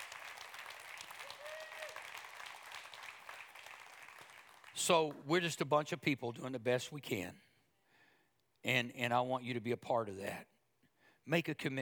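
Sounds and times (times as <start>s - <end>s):
audience applause: 0.0s - 5.0s
speech: 4.8s - 7.5s, 8.6s - 10.5s, 11.2s - 11.8s.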